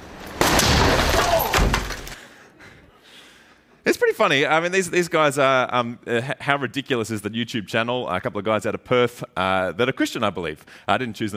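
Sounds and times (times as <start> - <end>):
one-ton axe falling on a fridge: 0.0 - 2.2
speech: 3.9 - 11.3.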